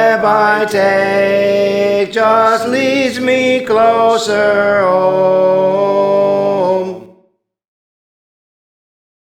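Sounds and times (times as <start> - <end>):
tenor singing: 0.0 - 7.2.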